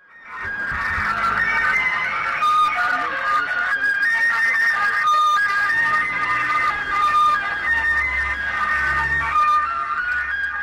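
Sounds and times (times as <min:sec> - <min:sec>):
gas delivery truck playing tinny looping electronic melody through a loudspeaker: 0:00.0 - 0:10.6
street noise: 0:00.0 - 0:10.6
gas delivery truck low engine rumble: 0:00.4 - 0:10.6.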